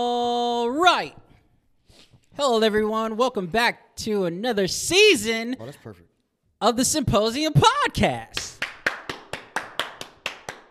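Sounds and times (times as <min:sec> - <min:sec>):
speech: 0:00.0 - 0:01.2, 0:02.4 - 0:08.5
round of applause: 0:08.4 - 0:10.6.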